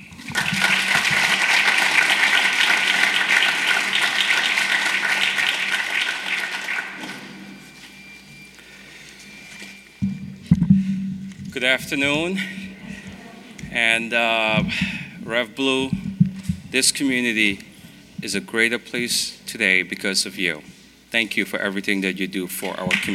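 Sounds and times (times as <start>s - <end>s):
crowd applause: 0.0s - 7.8s
faint thumps: 10.0s - 11.6s, 15.9s - 16.8s
speech: 11.6s - 12.6s, 13.8s - 16.0s, 16.7s - 23.1s.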